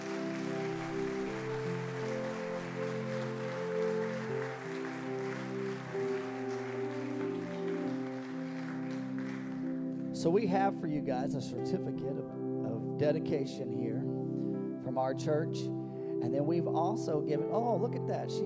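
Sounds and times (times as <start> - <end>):
audience clapping: 0.0 - 10.2
sustained organ-like chords: 0.0 - 18.4
speech: 10.2 - 14.2, 14.9 - 18.4.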